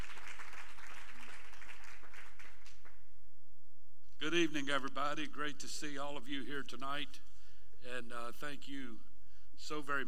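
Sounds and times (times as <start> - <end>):
crowd clapping hands: 0.0 - 3.1
speech: 4.2 - 7.2, 7.8 - 10.0.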